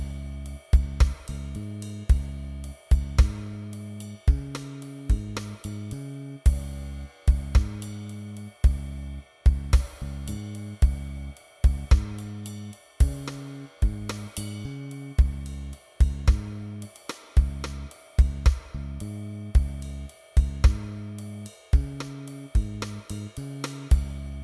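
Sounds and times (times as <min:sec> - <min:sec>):
jazz rock drone in D flat: 0:00.0 - 0:24.4.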